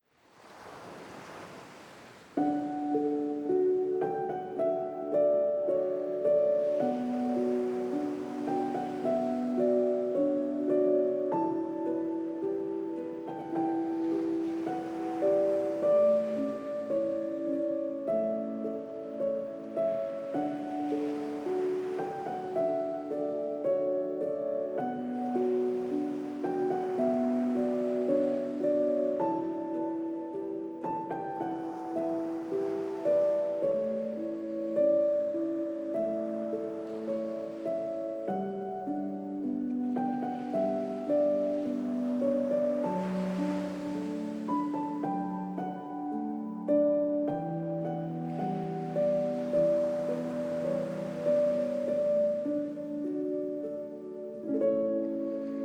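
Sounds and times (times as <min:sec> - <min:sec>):
piano: 0:00.0 - 0:55.6.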